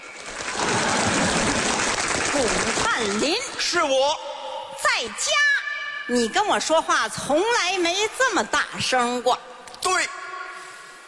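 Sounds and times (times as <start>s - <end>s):
audience applause and cheering: 0.0s - 3.6s
speech: 2.4s - 4.3s, 5.0s - 5.5s, 6.1s - 10.1s.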